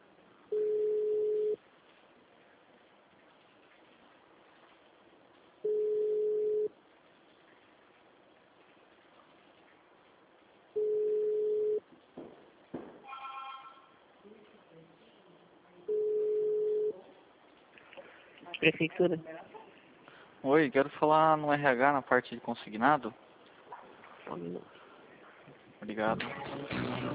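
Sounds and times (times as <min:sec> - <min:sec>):
telephone ringing tone while placing a call: 0:00.5 - 0:01.6, 0:05.7 - 0:06.7, 0:10.8 - 0:11.8, 0:15.9 - 0:16.9
speech: 0:18.6 - 0:19.5, 0:20.4 - 0:23.2, 0:24.3 - 0:24.8, 0:25.9 - 0:27.0.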